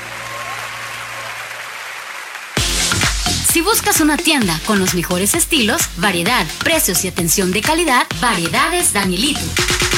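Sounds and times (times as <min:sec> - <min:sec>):
applause: 0:00.0 - 0:02.8
speech: 0:03.6 - 0:09.9.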